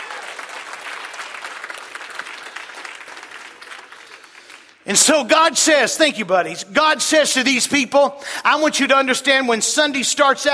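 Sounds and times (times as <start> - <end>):
audience hand clapping: 0.0 - 4.9
speech: 4.9 - 10.5.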